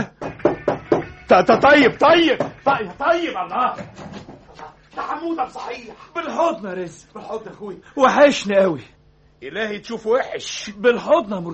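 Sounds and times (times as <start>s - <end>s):
knocking on a door: 0.0s - 2.8s
speech: 1.3s - 4.2s, 5.0s - 11.5s.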